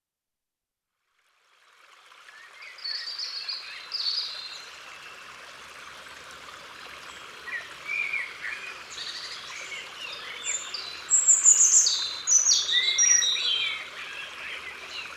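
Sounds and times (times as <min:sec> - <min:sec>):
European robin song: 0:07.5 - 0:15.1.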